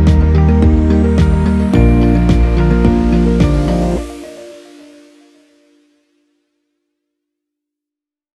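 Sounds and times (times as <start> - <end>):
ambient technology sounds: 0.0 - 5.9.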